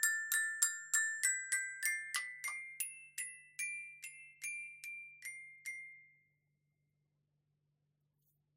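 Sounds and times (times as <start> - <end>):
glockenspiel: 0.0 - 6.5.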